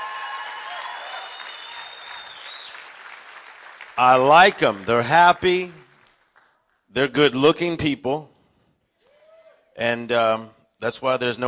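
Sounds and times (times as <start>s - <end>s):
audience applauding: 0.0s - 6.6s
speech: 4.0s - 5.8s, 6.9s - 8.3s, 9.8s - 11.4s.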